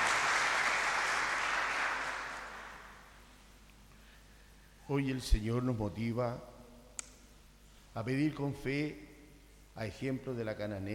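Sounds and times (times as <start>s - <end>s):
audience applause: 0.0s - 3.0s
speech: 4.9s - 6.5s, 8.0s - 9.1s, 9.8s - 10.9s.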